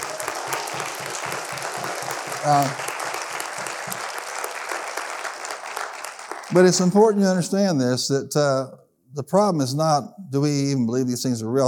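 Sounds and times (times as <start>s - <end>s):
audience applause: 0.0s - 7.4s
speech: 2.4s - 2.8s, 6.5s - 11.6s.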